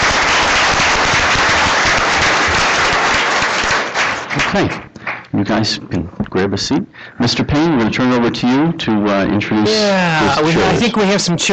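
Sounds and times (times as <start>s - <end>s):
crowd round of applause: 0.0s - 5.3s
speech: 4.5s - 11.5s.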